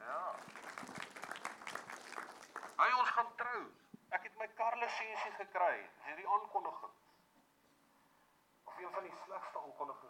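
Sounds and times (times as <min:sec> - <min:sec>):
crowd applauding: 0:00.2 - 0:02.9
speech: 0:04.9 - 0:07.0, 0:08.8 - 0:10.0.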